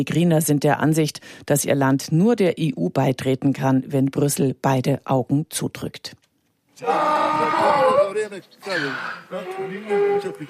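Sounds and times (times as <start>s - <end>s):
speech: 0.0s - 6.2s, 6.8s - 7.6s, 8.2s - 10.4s
hungry donkey braying: 6.8s - 10.4s.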